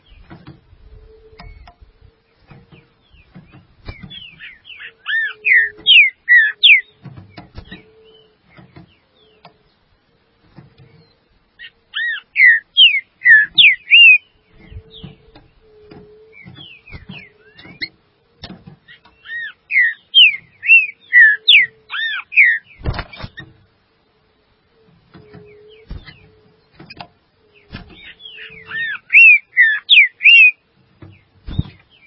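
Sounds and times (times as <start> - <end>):
green-winged saltator whistled song: 2.7 - 9.5, 10.9 - 17.9, 18.9 - 22.9, 27.4 - 32.0.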